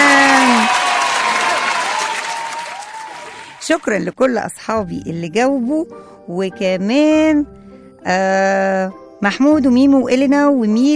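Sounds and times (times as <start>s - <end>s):
crowd applauding children who answered correctly: 0.0s - 3.8s
speech: 3.7s - 10.9s.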